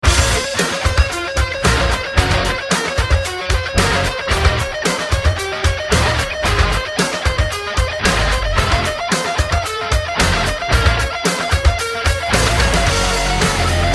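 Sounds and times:
rock guitar: 0.0 - 13.9.

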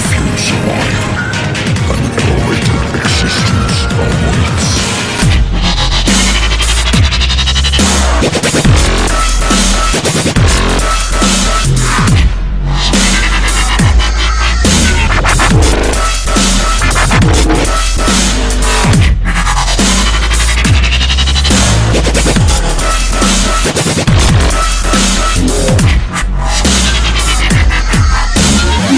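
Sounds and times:
dubstep music: 0.0 - 28.9.

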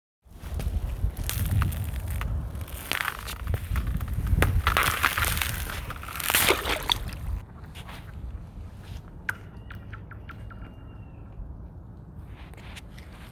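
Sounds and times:
crack: 0.4 - 7.4.

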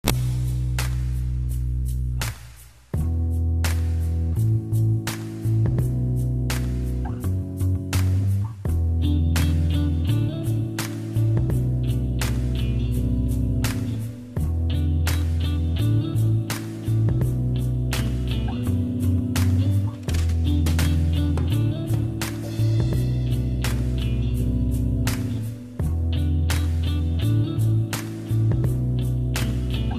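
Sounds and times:
neo-soul beat: 0.0 - 29.9.

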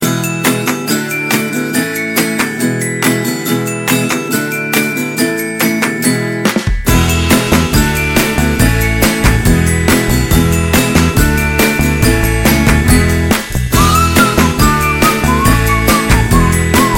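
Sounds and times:
acoustic melody: 0.0 - 16.9.

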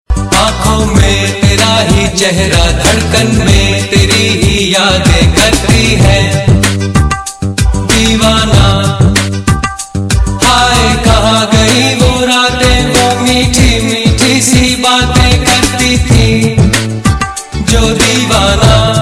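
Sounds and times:
romantic love song: 0.1 - 18.9.

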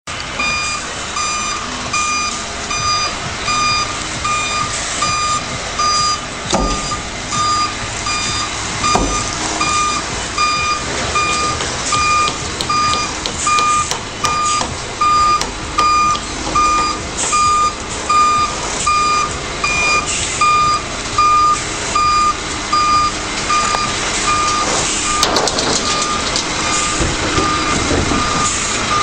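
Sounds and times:
lorry reversing: 0.1 - 29.0.

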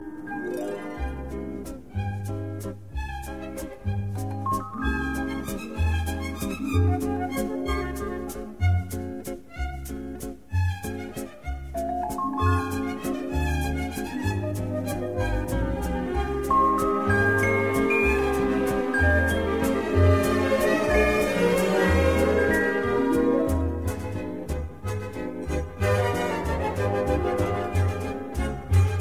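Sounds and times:
waltz music: 0.0 - 29.0.

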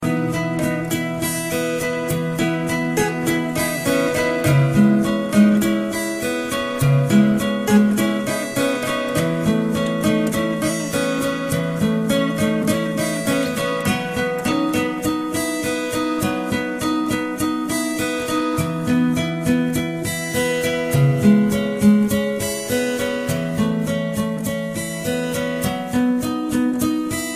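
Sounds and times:
guitar: 0.0 - 27.3.

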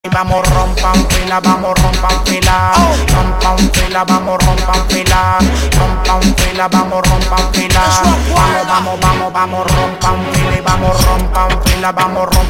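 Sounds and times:
reggaeton music: 0.0 - 12.4.

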